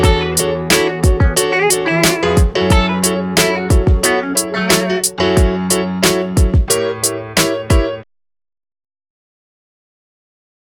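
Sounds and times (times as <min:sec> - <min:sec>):
bright jazz music: 0:00.0 - 0:08.0.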